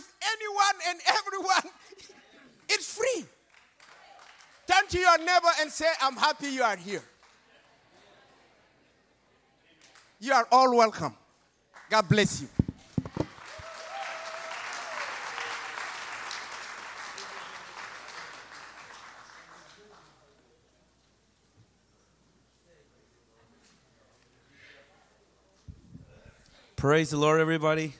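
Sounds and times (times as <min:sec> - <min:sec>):
speech: 0:00.2 - 0:01.8, 0:04.9 - 0:07.1, 0:10.2 - 0:11.2, 0:11.9 - 0:12.6, 0:26.8 - 0:27.9
audience clapping hands: 0:03.4 - 0:05.1, 0:11.7 - 0:20.4.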